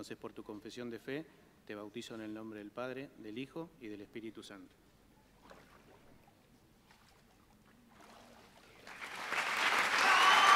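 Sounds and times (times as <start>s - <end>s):
speech: 0.0s - 4.9s
audience applause: 8.8s - 10.5s.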